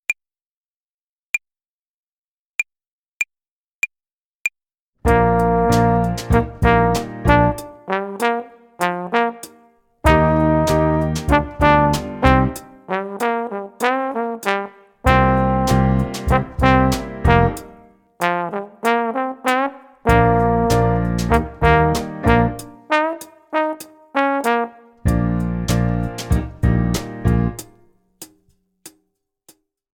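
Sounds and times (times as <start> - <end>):
hi-hat play-along rhythm exercise: 5.1 - 28.4.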